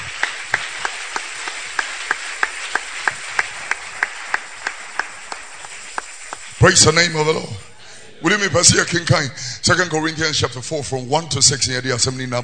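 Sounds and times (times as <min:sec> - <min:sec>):
audience clapping hands in a steady rhythm: 0:00.0 - 0:07.5
speech: 0:06.6 - 0:12.4.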